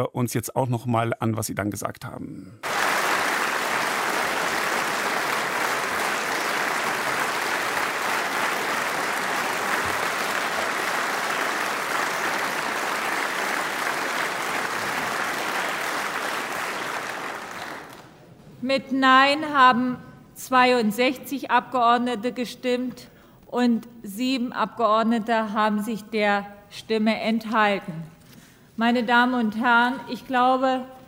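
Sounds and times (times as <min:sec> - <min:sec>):
speech: 0:00.0 - 0:03.0, 0:18.7 - 0:28.1, 0:28.8 - 0:31.0
parliament assembly applauding: 0:02.6 - 0:18.4.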